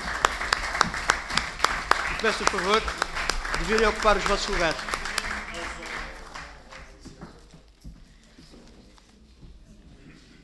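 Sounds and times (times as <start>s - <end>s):
parliament applause: 0.0s - 7.2s
speech: 2.2s - 3.0s, 3.6s - 5.0s.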